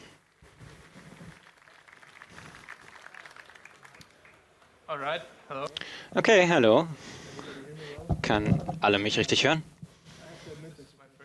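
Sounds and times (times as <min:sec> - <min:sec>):
audience applause: 0:01.1 - 0:04.8
speech: 0:04.9 - 0:07.2, 0:08.3 - 0:09.7.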